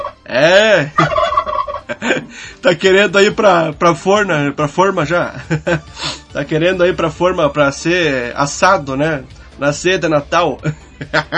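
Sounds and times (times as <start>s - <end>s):
turkey gobbling: 0.0s - 0.3s, 1.0s - 2.0s
speech: 0.3s - 1.2s, 2.0s - 11.3s
laughter: 0.8s - 1.3s, 1.9s - 2.3s, 5.3s - 5.9s, 10.6s - 11.3s.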